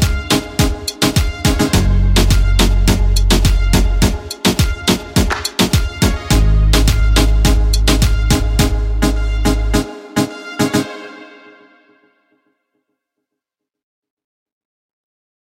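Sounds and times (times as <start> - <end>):
instrumental music: 0.0 - 12.3.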